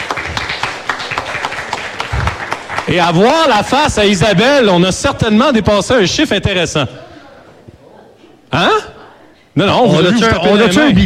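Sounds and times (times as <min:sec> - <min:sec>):
small accounting team clapping at a radio station celebration: 0:00.0 - 0:04.0
speech: 0:02.9 - 0:07.0, 0:08.5 - 0:08.9, 0:09.6 - 0:11.0.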